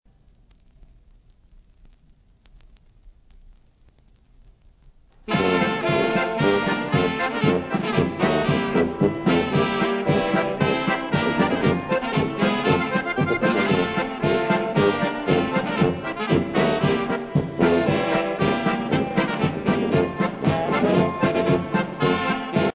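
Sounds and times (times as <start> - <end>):
polka music: 5.3 - 22.7.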